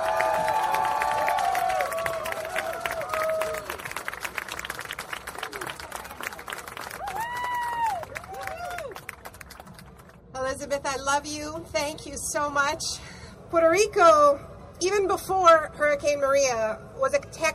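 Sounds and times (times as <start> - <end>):
whoops and cheering voices: 0.0 - 3.9, 6.8 - 9.1
audience applause: 0.0 - 10.2
speech: 10.7 - 17.5.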